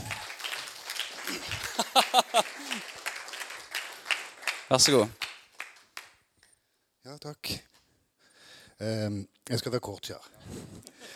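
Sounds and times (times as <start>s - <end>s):
audience applause: 0.0s - 6.1s
laughter: 1.1s - 3.0s
speech: 2.0s - 2.6s, 4.7s - 5.2s, 7.2s - 7.7s, 8.8s - 11.1s.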